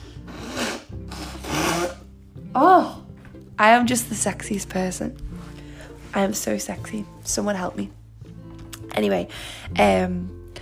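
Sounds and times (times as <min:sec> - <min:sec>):
nose blowing: 0:00.0 - 0:02.2
speech: 0:02.6 - 0:03.0, 0:03.6 - 0:05.3, 0:06.1 - 0:08.0, 0:09.0 - 0:10.4.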